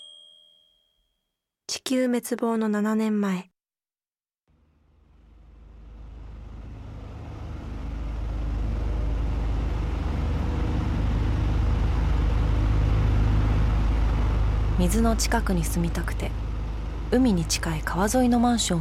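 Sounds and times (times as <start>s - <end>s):
speech: 1.9s - 3.5s, 14.8s - 16.4s, 17.1s - 18.7s
low diesel engine of passing boats: 4.6s - 18.7s.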